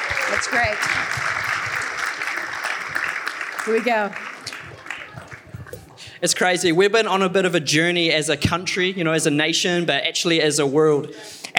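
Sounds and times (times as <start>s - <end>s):
audience clapping: 0.0s - 6.1s
speech: 0.4s - 1.4s, 3.6s - 4.3s, 6.2s - 11.5s.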